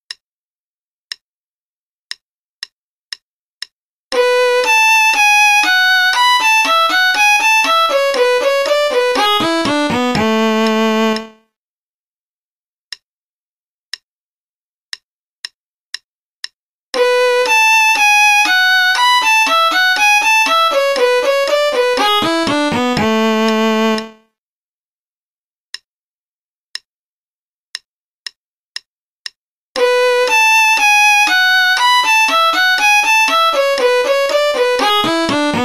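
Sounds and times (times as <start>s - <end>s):
play-along concerto in B minor at 60 bpm: 4.1s - 11.4s, 17.0s - 24.2s, 29.8s - 35.6s.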